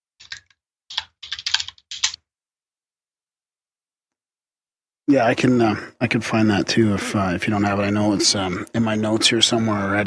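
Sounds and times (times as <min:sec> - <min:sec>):
clicky computer keyboard typing: 0:00.2 - 0:02.2
speech: 0:05.1 - 0:10.0.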